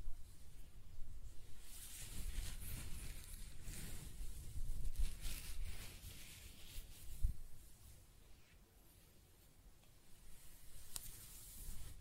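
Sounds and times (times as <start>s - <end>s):
hair scratching, brushing and stroking: 1.5s - 9.0s, 10.2s - 11.9s.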